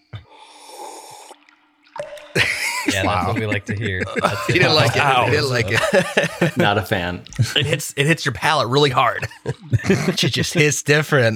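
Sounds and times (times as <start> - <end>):
sucking breath: 0.0 - 1.6
slurping whiskey to aerate it: 0.2 - 2.4, 7.1 - 7.6
laughter: 2.4 - 11.3
speech: 2.9 - 11.3.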